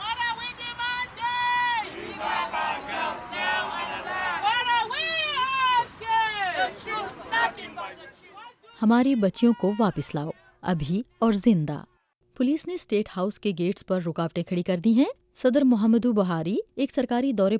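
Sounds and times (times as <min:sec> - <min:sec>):
protesters chanting slogans marching toward the State House: 0:00.0 - 0:11.2
crowd chatter: 0:01.3 - 0:08.7
speech: 0:08.8 - 0:17.5.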